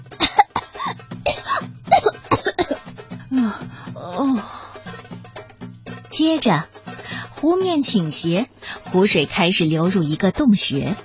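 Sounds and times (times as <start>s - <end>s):
coughing and sputtering water after nearly drowning: 0.1s - 4.4s
gasping breaths: 3.2s - 4.9s
speech: 6.2s - 6.7s, 7.4s - 11.0s.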